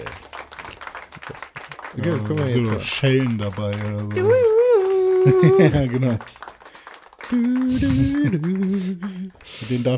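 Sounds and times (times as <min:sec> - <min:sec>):
applause: 0:00.0 - 0:09.9
speech: 0:02.0 - 0:04.6, 0:05.2 - 0:06.4, 0:07.3 - 0:09.9
laughter: 0:03.7 - 0:06.2, 0:07.3 - 0:09.3
short vocal bursts: 0:07.3 - 0:09.9.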